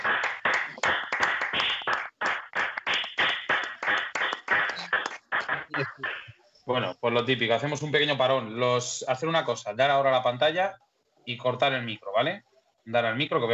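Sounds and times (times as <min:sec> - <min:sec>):
group applause: 0:00.0 - 0:06.2
speech: 0:05.8 - 0:06.1, 0:06.7 - 0:13.5.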